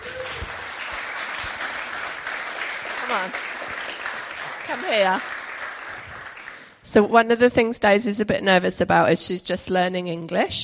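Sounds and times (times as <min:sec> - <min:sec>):
crowd clapping: 0:00.0 - 0:06.8
speech: 0:03.1 - 0:03.5, 0:04.7 - 0:05.3, 0:06.9 - 0:10.6.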